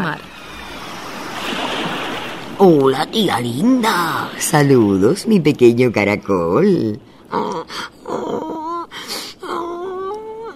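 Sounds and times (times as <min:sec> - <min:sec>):
speech: 0:02.6 - 0:08.4
person crying: 0:07.3 - 0:10.5.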